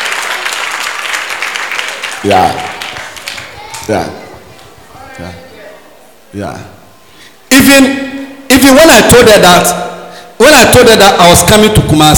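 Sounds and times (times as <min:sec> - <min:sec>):
audience applause: 0:00.0 - 0:04.7
speech: 0:02.2 - 0:02.8, 0:03.9 - 0:04.2, 0:05.2 - 0:05.4, 0:06.3 - 0:06.8, 0:07.5 - 0:09.8, 0:10.4 - 0:12.1.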